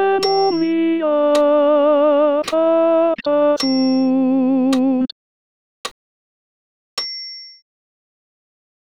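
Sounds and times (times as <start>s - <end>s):
solo tenor voice singing a Credo: 0.0s - 5.1s.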